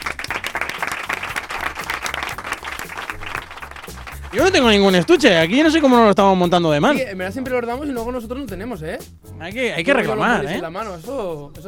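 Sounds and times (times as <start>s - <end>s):
audience applause: 0.0s - 5.2s
speech: 4.4s - 11.6s.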